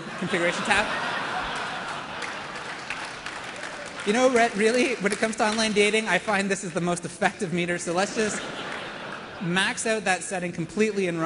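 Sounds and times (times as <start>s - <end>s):
laughter: 0.0s - 5.1s, 7.9s - 10.1s
speech: 0.2s - 1.1s, 4.0s - 8.7s, 9.4s - 11.2s
audience applause during a live tech demo: 0.3s - 5.7s.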